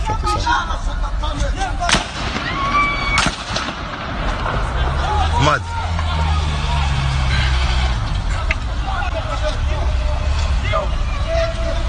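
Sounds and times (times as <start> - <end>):
crowd voices: 0.0 - 11.8
Kalashnikov rifle gunfire: 1.9 - 4.5
speech: 5.5 - 5.8.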